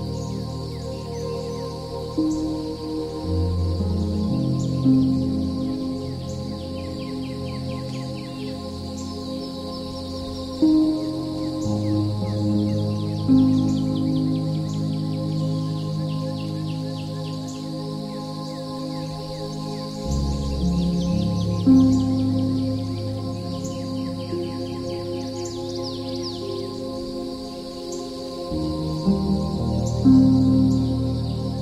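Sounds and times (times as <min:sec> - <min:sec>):
relaxing piano music: 0:00.0 - 0:31.6.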